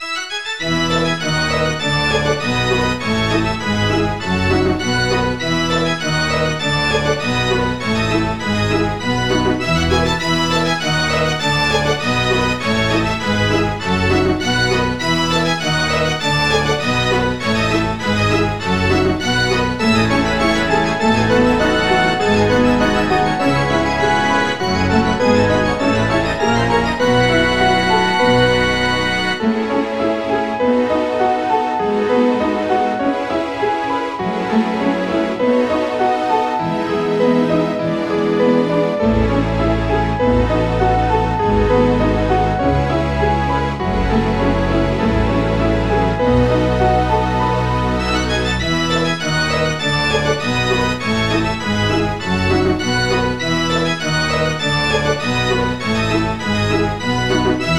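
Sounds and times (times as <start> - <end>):
background music: 0.0 - 57.7.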